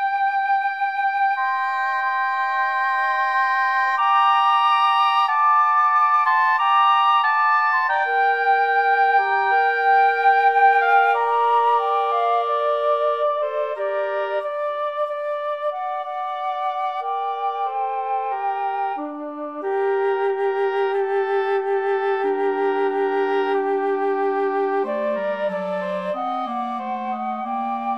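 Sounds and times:
clarinet in a trio: 0:00.0 - 0:27.9
flute in a trio: 0:00.0 - 0:27.9
oboe in a trio: 0:00.0 - 0:27.9.

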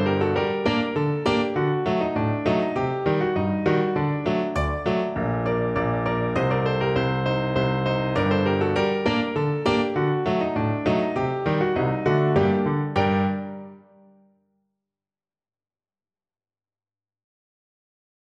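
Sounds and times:
piano: 0:00.0 - 0:14.4.

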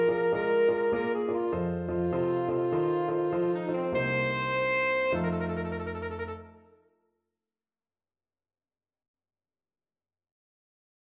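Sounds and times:
tenor saxophone: 0:00.0 - 0:06.8.

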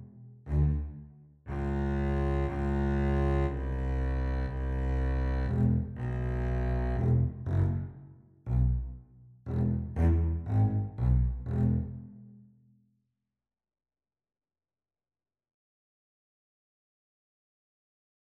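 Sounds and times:
double bass duet: 0:00.0 - 0:12.1.

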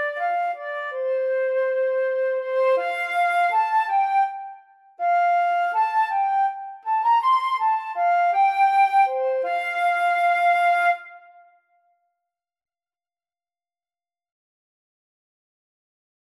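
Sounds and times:
flute duet: 0:00.0 - 0:11.6.

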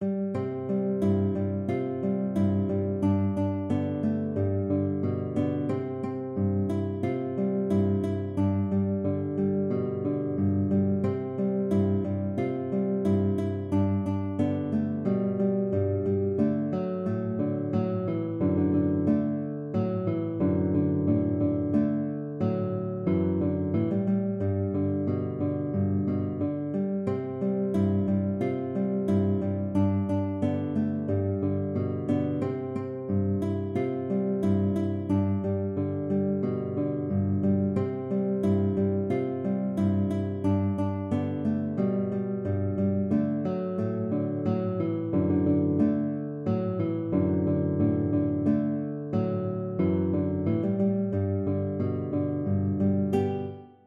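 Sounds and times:
guitar: 0:00.0 - 0:53.8.

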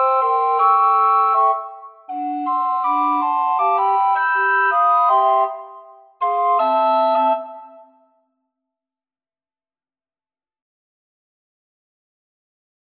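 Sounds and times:
recorder quartet: 0:00.0 - 0:07.8.

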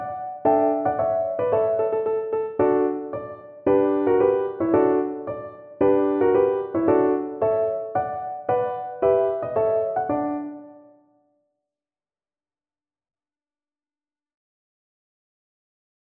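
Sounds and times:
piano: 0:00.0 - 0:11.2.

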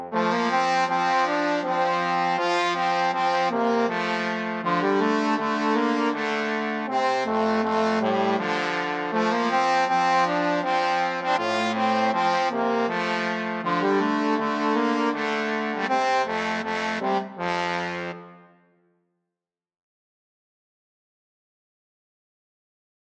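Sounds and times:
trombone trio: 0:00.0 - 0:18.4.

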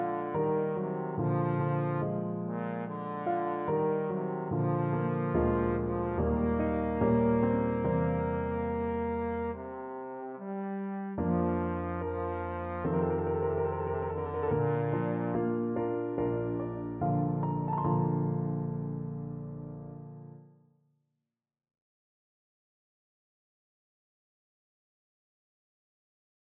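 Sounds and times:
trombone: 0:00.0 - 0:18.9.

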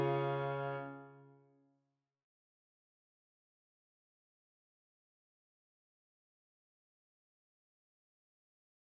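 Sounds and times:
alto saxophone: 0:00.0 - 0:01.3.

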